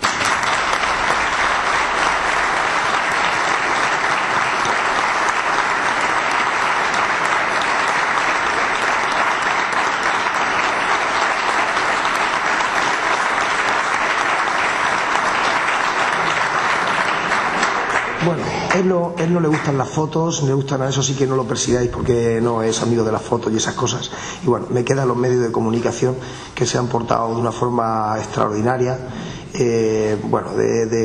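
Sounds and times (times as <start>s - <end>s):
audience applause: 0.0s - 19.8s
speech: 18.8s - 31.0s.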